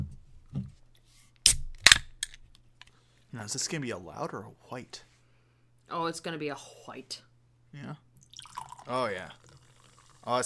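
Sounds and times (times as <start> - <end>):
can of grapefruit-flavoured drink being cracked open: 1.5 - 2.6
speech: 3.3 - 5.1, 5.9 - 8.1, 8.9 - 9.5, 10.2 - 10.4.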